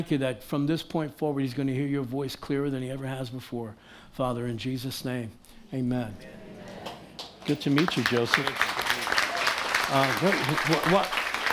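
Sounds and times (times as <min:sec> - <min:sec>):
speech: 0:00.0 - 0:06.4, 0:07.4 - 0:08.7, 0:09.9 - 0:11.2
audience clapping: 0:06.6 - 0:11.5.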